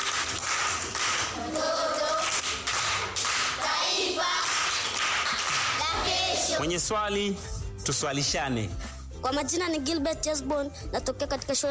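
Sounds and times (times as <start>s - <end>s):
audience clapping at a school quiz session: 0.0s - 6.5s
speech: 6.6s - 11.6s.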